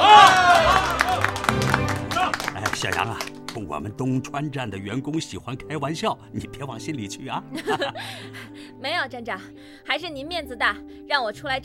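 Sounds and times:
applause: 0.0 - 3.8
speech: 2.8 - 11.6.

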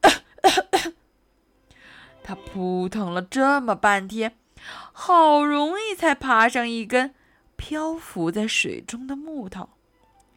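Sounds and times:
harsh raspy coughs: 0.0 - 1.0
speech: 2.3 - 9.8.

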